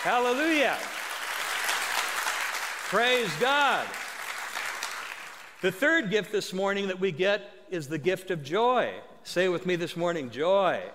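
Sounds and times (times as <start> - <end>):
speech: 0.0 - 1.0, 2.9 - 4.0, 5.6 - 10.9
audience hand clapping: 0.0 - 5.7.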